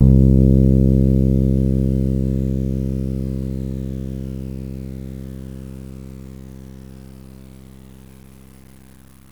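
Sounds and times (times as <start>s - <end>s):
fretless bass: 0.0s - 9.1s.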